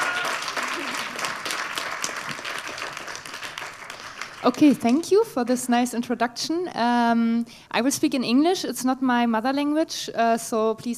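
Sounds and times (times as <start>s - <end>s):
crowd applauding: 0.0s - 4.8s
speech: 4.4s - 10.9s.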